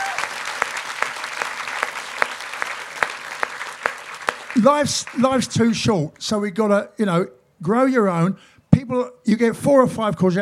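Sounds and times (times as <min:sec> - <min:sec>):
audience clapping: 0:00.0 - 0:05.8
speech: 0:04.6 - 0:10.4.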